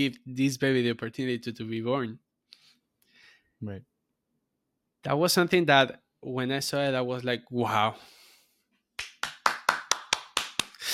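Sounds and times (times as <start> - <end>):
speech: 0.0 - 2.3, 3.6 - 3.9, 5.0 - 8.2
applause: 9.0 - 10.9.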